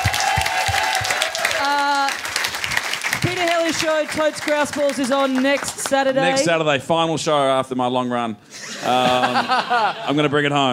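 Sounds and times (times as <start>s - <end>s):
crowd cheering: 0.0s - 6.0s
audience applause: 0.0s - 6.4s
speech: 3.8s - 10.7s
laughter: 8.5s - 10.7s.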